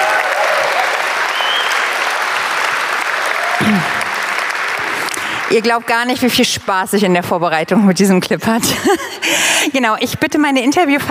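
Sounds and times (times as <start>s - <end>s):
audience applause: 0.0s - 5.9s
speech: 5.5s - 11.0s.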